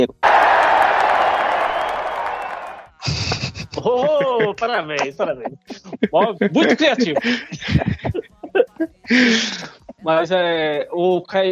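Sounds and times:
speech: 0:00.0 - 0:00.3, 0:03.8 - 0:08.2, 0:08.8 - 0:11.5
crowd applauding: 0:00.0 - 0:03.1
laughter: 0:02.9 - 0:10.4.

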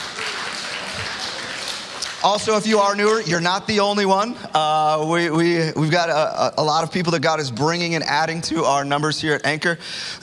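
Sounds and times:
audience applauding: 0:00.0 - 0:03.4
speech: 0:02.2 - 0:10.2.

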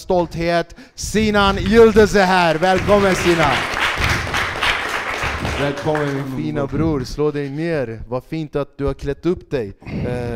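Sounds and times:
speech: 0:00.0 - 0:04.1, 0:05.6 - 0:10.3
audience applause: 0:01.5 - 0:06.8.

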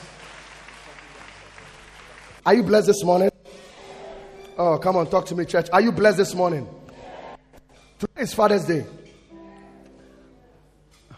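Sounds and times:
audience clapping: 0:00.0 - 0:03.0
speech: 0:02.4 - 0:03.3, 0:04.6 - 0:06.8, 0:08.2 - 0:09.0.

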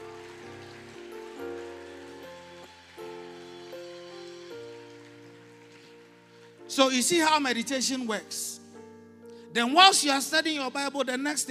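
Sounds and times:
audience clapping: 0:00.0 - 0:07.2
speech: 0:06.7 - 0:08.6, 0:09.6 - 0:11.4.

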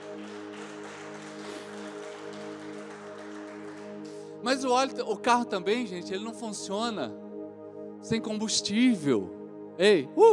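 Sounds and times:
audience applauding: 0:00.0 - 0:04.7
speech: 0:04.4 - 0:07.2, 0:08.1 - 0:10.3.

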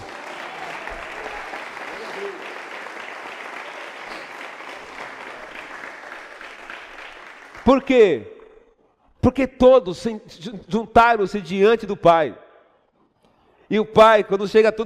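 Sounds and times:
audience applauding: 0:00.0 - 0:08.0
speech: 0:07.7 - 0:08.3, 0:09.2 - 0:12.4, 0:13.7 - 0:14.8.

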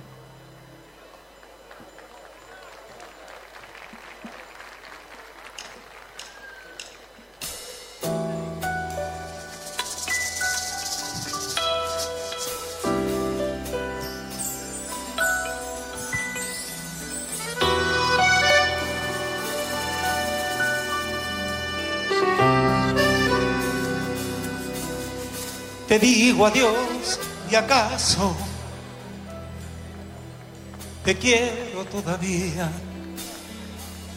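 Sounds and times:
song playing: 0:08.0 - 0:34.1
speech: 0:25.9 - 0:28.4, 0:31.1 - 0:32.9.

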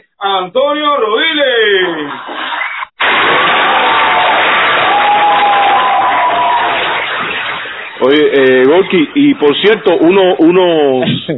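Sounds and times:
speech: 0:00.2 - 0:02.6, 0:08.1 - 0:11.3
laughter: 0:01.8 - 0:02.9, 0:06.9 - 0:11.3
cheering: 0:01.9 - 0:08.8
applause: 0:02.6 - 0:09.0.

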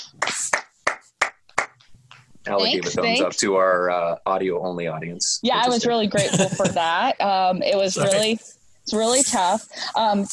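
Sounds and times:
golf clap: 0:00.0 - 0:02.3
speech: 0:02.5 - 0:10.3
laughter: 0:05.7 - 0:08.3.

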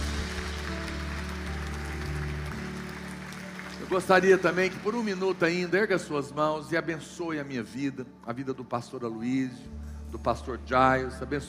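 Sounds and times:
audience applauding: 0:00.0 - 0:06.1
speech: 0:03.9 - 0:11.4.

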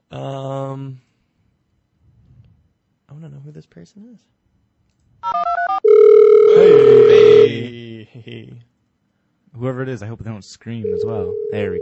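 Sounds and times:
speech: 0:00.1 - 0:01.1, 0:03.1 - 0:04.4, 0:06.6 - 0:08.7, 0:09.5 - 0:11.7
steady telephone line busy tone: 0:05.2 - 0:07.6, 0:10.8 - 0:11.7
telephone warbling electronic beeps: 0:05.4 - 0:07.6.

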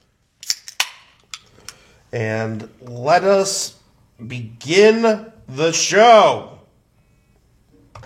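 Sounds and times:
beer can cracking open: 0:00.4 - 0:01.5
speech: 0:02.1 - 0:06.6.

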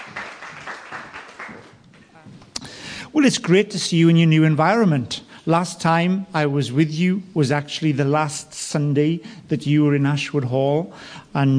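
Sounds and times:
audience round of applause: 0:00.0 - 0:01.9
speech: 0:03.1 - 0:11.5.

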